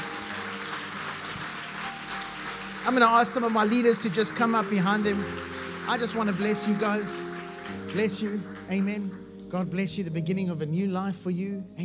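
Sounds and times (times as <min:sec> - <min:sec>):
audience clapping: 0:00.0 - 0:09.7
speech: 0:02.9 - 0:07.3, 0:07.9 - 0:11.8.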